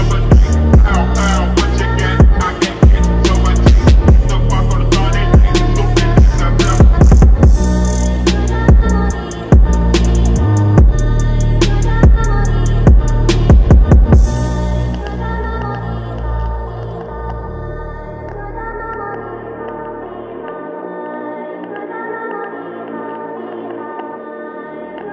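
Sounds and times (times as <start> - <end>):
slowed music with reverb: 0.0 - 25.1.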